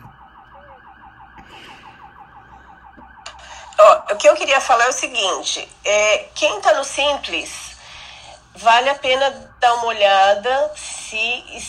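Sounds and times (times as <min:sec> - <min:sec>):
fire truck siren passing nearby: 0:00.0 - 0:11.6
speech: 0:03.8 - 0:07.7, 0:08.6 - 0:11.6.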